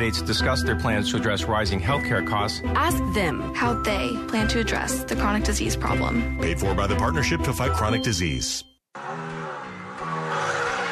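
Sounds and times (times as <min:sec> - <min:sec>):
speech: 0:00.0 - 0:08.7
car engine roaring and revving: 0:09.0 - 0:10.9
car tires squealing: 0:09.0 - 0:10.9.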